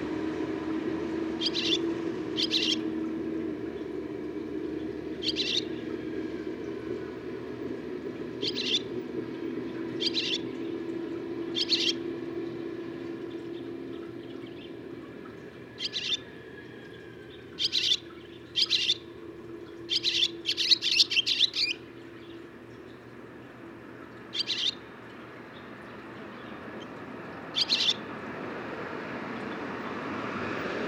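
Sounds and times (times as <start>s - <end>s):
low hum: 0.0s - 30.8s
barn swallow chirping: 1.4s - 1.8s, 2.4s - 2.8s, 5.2s - 5.9s, 8.4s - 9.0s, 9.9s - 10.7s, 11.4s - 12.0s, 15.8s - 16.3s, 17.3s - 23.0s, 24.3s - 24.9s, 25.5s - 28.0s.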